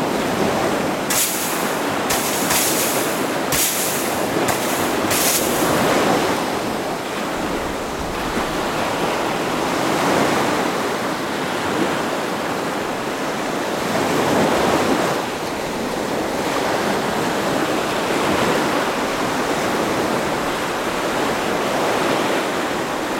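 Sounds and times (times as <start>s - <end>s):
waves washing onto a shore: 0.0s - 23.1s
crisp scraping bursts: 1.1s - 5.9s.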